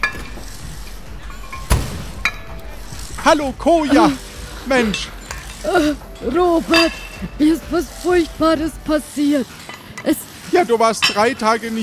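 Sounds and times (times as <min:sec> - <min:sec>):
gym door crashing open: 0:00.0 - 0:02.6
speech: 0:03.2 - 0:11.8.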